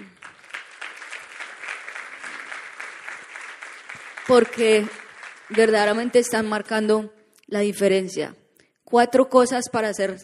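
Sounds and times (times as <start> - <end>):
audience applause: 0.0 - 6.3
speech: 4.3 - 10.2.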